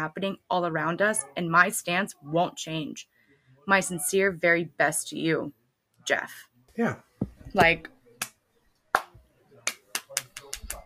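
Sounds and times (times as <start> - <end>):
speech: 0.0 - 8.0
slow hand clapping: 7.6 - 10.8.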